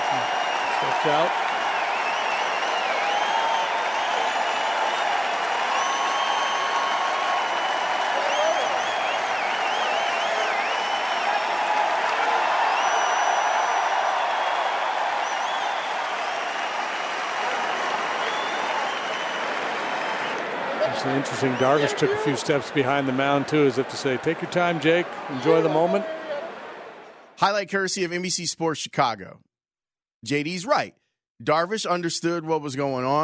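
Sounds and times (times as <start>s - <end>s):
fans whistling: 0.0s - 11.7s, 12.6s - 20.5s
Chicago Cubs fans clapping and cheering at Wrigley Field: 0.0s - 27.4s
speech: 0.1s - 1.4s, 21.3s - 26.2s, 27.4s - 29.5s, 30.2s - 33.2s.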